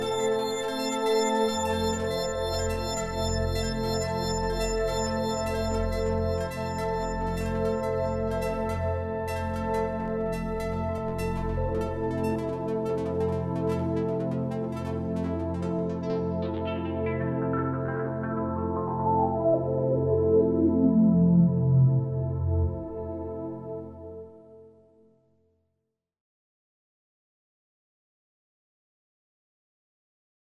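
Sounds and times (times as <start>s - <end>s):
Yamaha SY77 FM synthesizer pads and textures: 0.0s - 24.1s.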